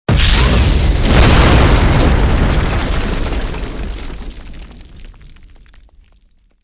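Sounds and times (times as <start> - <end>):
explosion: 0.1 - 6.6.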